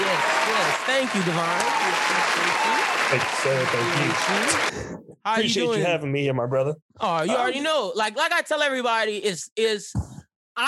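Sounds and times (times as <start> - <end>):
round of applause: 0.0 - 4.8
speech: 0.9 - 10.6.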